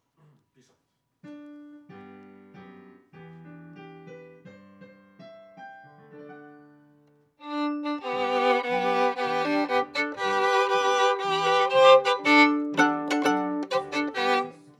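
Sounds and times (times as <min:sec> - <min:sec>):
viola playing D: 0:07.4 - 0:14.7.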